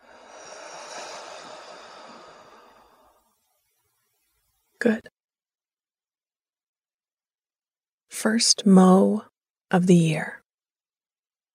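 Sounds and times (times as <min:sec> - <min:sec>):
person breathing in deeply and exhaling: 0:00.0 - 0:03.3
speech: 0:04.8 - 0:05.1, 0:08.2 - 0:10.4.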